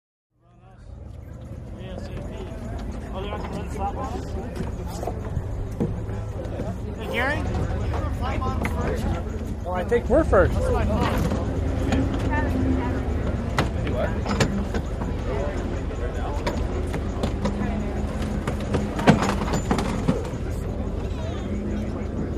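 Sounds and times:
motorboats at a boat race pit: 0.5s - 22.3s.

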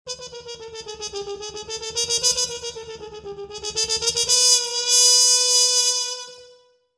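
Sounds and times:
music logo played on mute trumpet: 0.1s - 6.8s.

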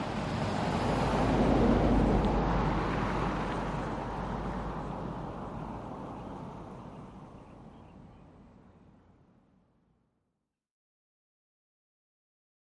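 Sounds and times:
light cars passing by on a suburban street: 0.0s - 9.3s
birds on a suburban street: 4.8s - 8.8s.

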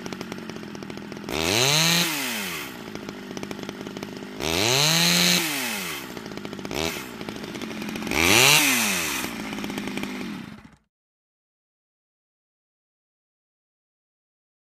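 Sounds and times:
chainsaw starting with short revs and running, close perspective: 0.0s - 10.9s.

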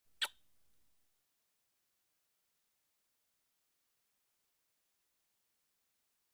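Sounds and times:
blowing a kiss with puckered lips: 0.2s - 0.4s.

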